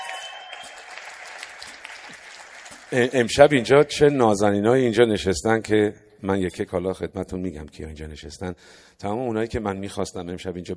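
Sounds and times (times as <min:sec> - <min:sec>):
audience clapping for a guest: 0:00.0 - 0:03.4
speech: 0:02.9 - 0:10.7.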